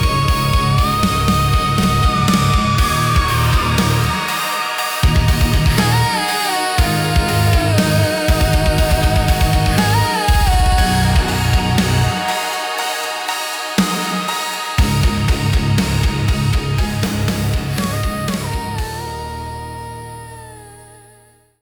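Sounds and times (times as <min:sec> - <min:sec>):
melodic metal music: 0:00.0 - 0:21.0.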